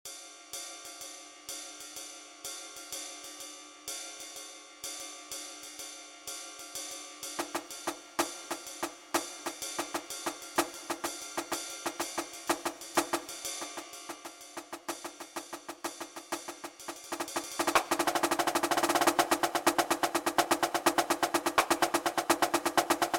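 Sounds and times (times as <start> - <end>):
swing music: 9.1 - 23.1.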